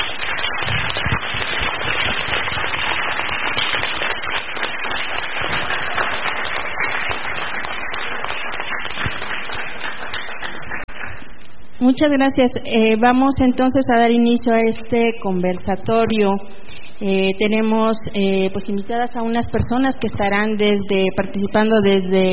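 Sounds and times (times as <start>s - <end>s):
audience applause: 0.0s - 11.3s
speech: 11.8s - 22.3s.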